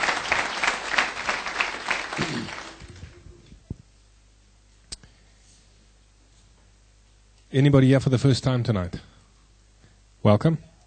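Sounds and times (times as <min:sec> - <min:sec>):
church congregation applause: 0:00.0 - 0:03.3
speech: 0:07.5 - 0:09.1, 0:10.2 - 0:10.7.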